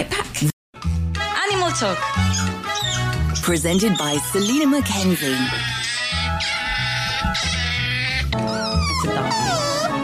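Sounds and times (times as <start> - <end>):
speech: 0.0 - 0.6, 1.8 - 2.5, 3.4 - 6.0, 7.2 - 7.7
otter calling: 2.2 - 9.9.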